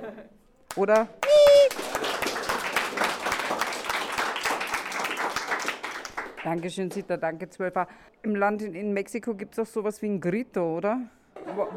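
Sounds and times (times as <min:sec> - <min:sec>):
speech: 0:00.1 - 0:01.4, 0:06.4 - 0:11.7
applause: 0:00.7 - 0:07.1.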